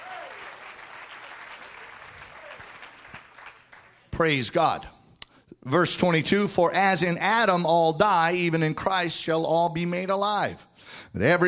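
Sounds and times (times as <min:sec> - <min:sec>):
audience clapping hands: 0:00.0 - 0:04.1
speech: 0:04.2 - 0:04.9, 0:05.6 - 0:11.4.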